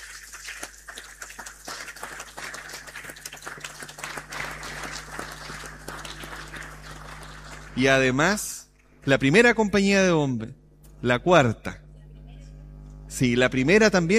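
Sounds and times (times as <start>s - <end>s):
audience applause: 0.0s - 8.2s
speech: 7.8s - 11.8s, 13.2s - 14.1s.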